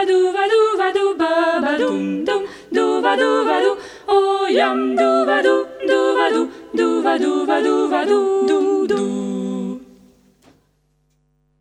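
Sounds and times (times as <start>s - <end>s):
polonaise music: 0.0s - 10.3s.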